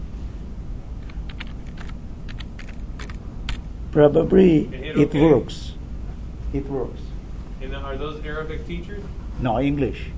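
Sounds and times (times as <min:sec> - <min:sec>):
steady hum: 0:00.0 - 0:10.1
typing Arabic on a computer keyboard: 0:01.0 - 0:03.6
speech: 0:04.0 - 0:05.8, 0:06.5 - 0:10.1.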